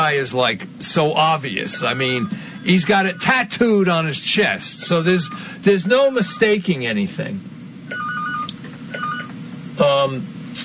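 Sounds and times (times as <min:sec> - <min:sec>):
speech: 0:00.1 - 0:08.0, 0:09.8 - 0:10.3
telephone ringing: 0:01.7 - 0:03.5, 0:05.2 - 0:06.6, 0:07.9 - 0:09.3.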